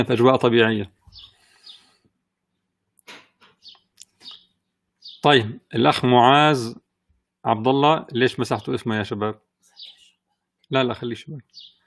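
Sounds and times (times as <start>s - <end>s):
speech: 0.0s - 1.3s, 5.2s - 6.8s, 7.4s - 9.4s, 10.7s - 11.7s
sparrows chirping through an open window: 0.1s - 2.0s, 3.4s - 6.8s, 8.1s - 11.8s.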